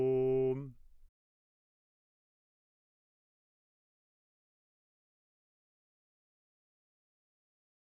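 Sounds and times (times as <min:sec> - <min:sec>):
tenor singing: 0:00.0 - 0:00.8.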